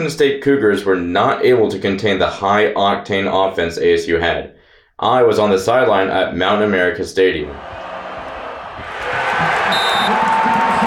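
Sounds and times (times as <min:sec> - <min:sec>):
speech: 0:00.0 - 0:07.8
college football stadium crowd roaring at Mountain America Stadium after a defensive stop: 0:07.5 - 0:10.8.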